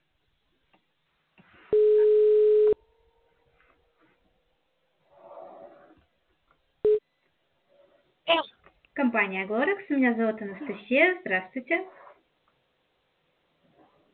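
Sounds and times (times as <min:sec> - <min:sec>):
outgoing-call ringback tone on a telephone line: 0:01.7 - 0:02.8
speech: 0:09.1 - 0:12.0.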